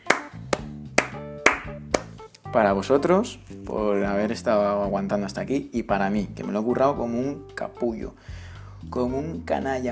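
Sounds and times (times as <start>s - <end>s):
clapping applause: 0.0s - 2.2s
speech: 2.5s - 9.9s.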